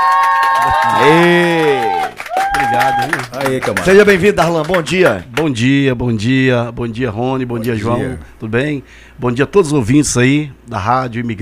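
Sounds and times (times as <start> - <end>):
one loud voice whooping: 0.0 - 3.3
studio audience cheering and clapping: 0.0 - 5.5
speech: 0.8 - 1.9, 2.6 - 11.4.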